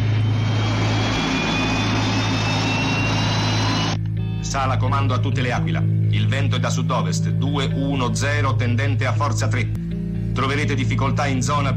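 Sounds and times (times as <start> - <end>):
aircraft engines spooling up for takeoff: 0.0 - 4.0
speech: 4.5 - 9.8, 10.4 - 11.7.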